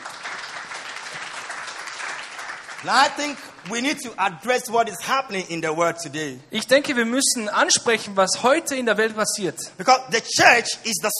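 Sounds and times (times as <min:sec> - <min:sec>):
church congregation clapping at a service: 0:00.0 - 0:04.1
speech: 0:02.8 - 0:11.1.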